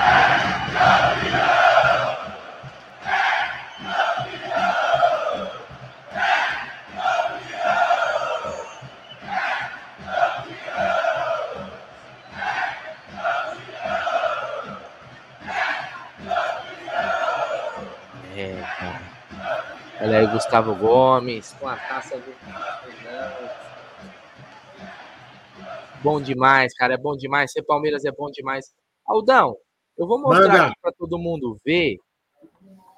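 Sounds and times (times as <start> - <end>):
stadium crowd chanting and cheering in celebration of trophy lift: 0.0 - 26.4
speech: 20.2 - 22.9, 26.0 - 32.0.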